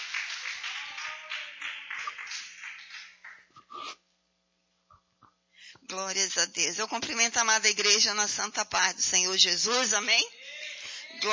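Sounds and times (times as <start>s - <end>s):
audience clapping: 0.0s - 4.0s
speech: 5.9s - 10.4s.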